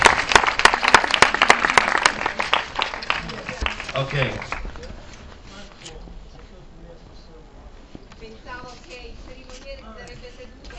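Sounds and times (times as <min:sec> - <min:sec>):
audience applause: 0:00.0 - 0:04.8
speech: 0:04.0 - 0:04.6.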